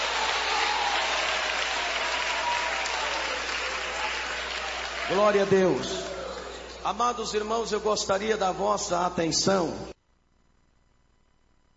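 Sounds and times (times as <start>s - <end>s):
people clapping: 0.0s - 7.6s
speech: 5.1s - 6.1s, 6.8s - 9.9s.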